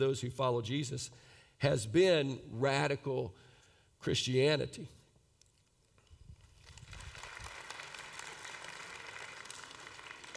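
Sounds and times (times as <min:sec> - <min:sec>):
speech: 0:00.0 - 0:05.0
audience clapping: 0:06.4 - 0:10.3.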